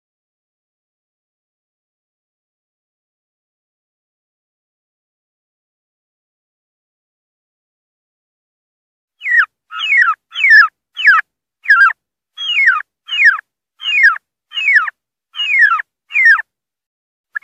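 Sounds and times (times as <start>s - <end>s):
turkey giving a distress call with rasping squeals: 9.2s - 16.4s.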